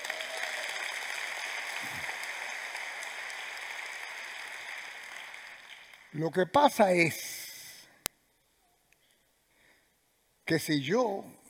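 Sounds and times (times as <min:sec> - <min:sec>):
audience applause: 0:00.0 - 0:06.2
speech: 0:06.2 - 0:07.3, 0:10.5 - 0:11.4.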